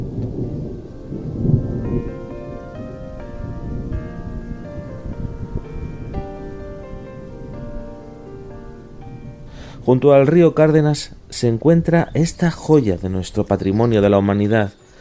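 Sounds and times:
deep rolling thunder of a summer thunderstorm: 0:00.0 - 0:13.6
steady rain: 0:00.0 - 0:13.6
soft sustained melodic tones: 0:00.1 - 0:15.0
speech: 0:09.8 - 0:14.8.

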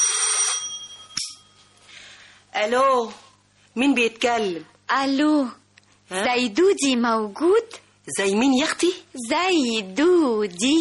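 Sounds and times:
telephone ringing: 0:00.0 - 0:01.7
speech: 0:02.6 - 0:10.8.

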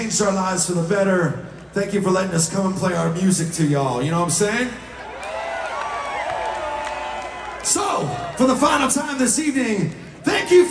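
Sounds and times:
speech: 0:00.1 - 0:04.9, 0:08.0 - 0:10.6
punk concert crowd cheering and whooping: 0:05.0 - 0:08.9, 0:10.2 - 0:10.6
punk concert crowd clapping: 0:05.2 - 0:08.4.

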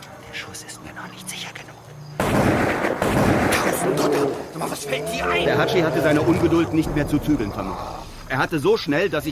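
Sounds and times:
speech: 0:00.5 - 0:02.8, 0:03.7 - 0:09.3
rifle shots fired in quick succession: 0:02.2 - 0:04.0
murmuring: 0:03.6 - 0:08.4.

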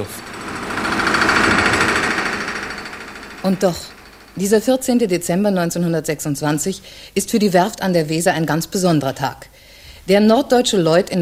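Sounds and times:
speech: 0:00.0 - 0:00.3, 0:03.4 - 0:09.5, 0:10.1 - 0:11.2
riveting hammers pounding on slipways of a Weser shipyard in 1926: 0:00.0 - 0:06.0.

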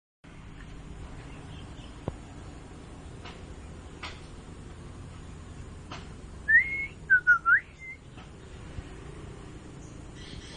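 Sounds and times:
oriental magpie-robin singing varied phrases: 0:06.5 - 0:08.6, 0:09.8 - 0:10.5.

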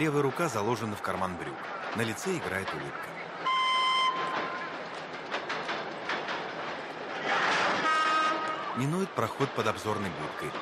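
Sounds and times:
speech: 0:00.0 - 0:03.3, 0:08.8 - 0:10.5
rhythmic clacking of train wheels: 0:00.0 - 0:10.5
train rolling past on rails near a station: 0:00.0 - 0:10.5
sustained tonal train horn: 0:03.4 - 0:04.5, 0:07.8 - 0:08.8.

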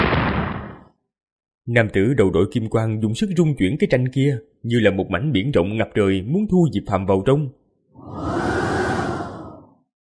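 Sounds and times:
speech: 0:01.7 - 0:08.2
howling wind whoosh sound effect: 0:08.0 - 0:09.9.

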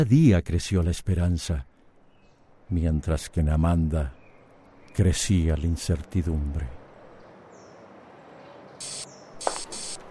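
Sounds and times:
speech: 0:00.0 - 0:01.7, 0:02.7 - 0:04.2, 0:05.0 - 0:06.8
aerosol hair spray being sprayed: 0:08.8 - 0:10.0.

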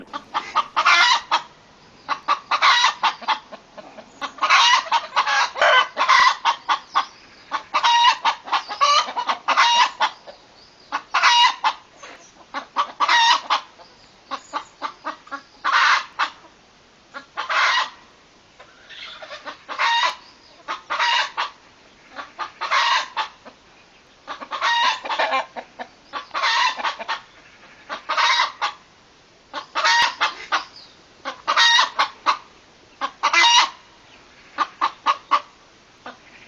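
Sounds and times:
chickens clucking at a farmhouse near Ogoño: 0:00.0 - 0:28.9, 0:29.5 - 0:36.4.

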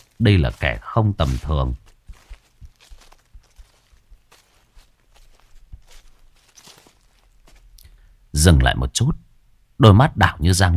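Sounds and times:
soft cautious footsteps: 0:00.0 - 0:08.2
speech: 0:00.2 - 0:01.9, 0:08.4 - 0:09.2, 0:09.8 - 0:10.7.

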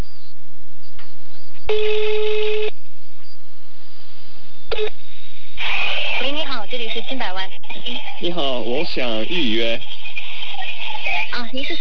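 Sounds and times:
low hum: 0:00.0 - 0:11.7
speech: 0:01.7 - 0:02.0, 0:07.0 - 0:10.0, 0:11.3 - 0:11.7
telephone ringback tone from a call to a restaurant: 0:01.7 - 0:02.7.

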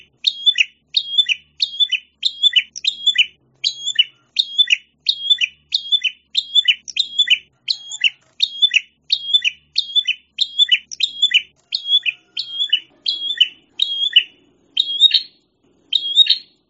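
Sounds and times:
prinia chirping: 0:00.0 - 0:16.6.

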